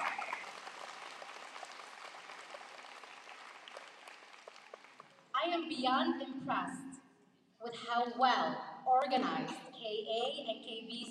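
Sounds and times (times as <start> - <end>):
audience applause: 0.0 - 5.3
speech: 5.4 - 6.9, 7.6 - 11.0.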